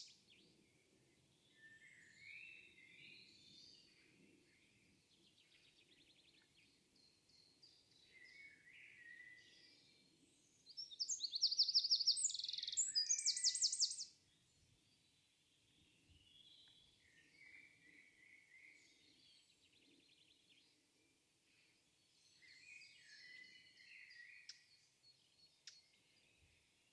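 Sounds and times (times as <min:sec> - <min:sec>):
bird song with buzzy trills: 0:00.0 - 0:21.2, 0:22.0 - 0:26.9.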